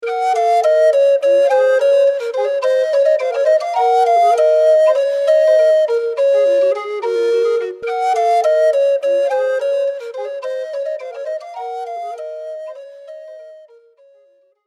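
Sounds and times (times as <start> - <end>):
flutes: 0.0 - 14.4.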